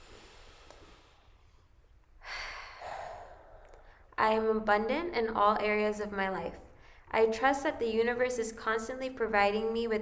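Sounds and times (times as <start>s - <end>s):
deep breath in during a group affirmation exercise: 0.0s - 4.1s
speech: 4.3s - 10.0s.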